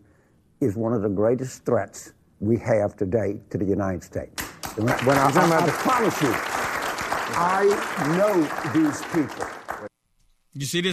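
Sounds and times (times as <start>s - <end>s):
speech: 0.6s - 6.6s, 7.3s - 9.8s, 10.6s - 10.9s
Bill Maher's studio audience clapping: 4.4s - 9.9s.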